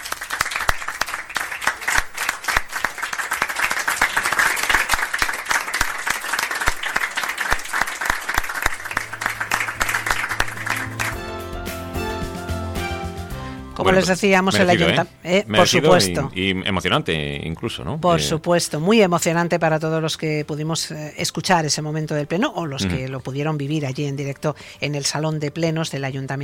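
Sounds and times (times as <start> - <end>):
crowd applause at council meeting: 0.0 - 11.5
sustained musical tones: 8.8 - 12.8
speech: 13.9 - 26.4.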